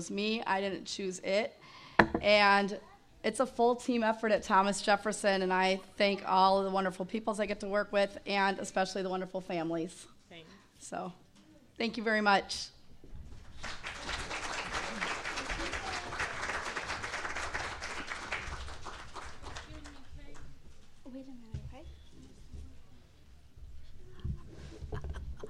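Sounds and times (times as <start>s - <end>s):
speech: 0.0s - 11.2s, 11.8s - 12.8s
crowd applauding an award winner: 13.4s - 20.5s.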